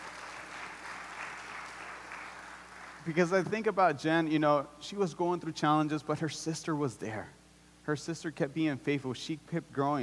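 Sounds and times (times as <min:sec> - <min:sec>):
audience applause: 0:00.0 - 0:03.1
speech: 0:03.0 - 0:10.0.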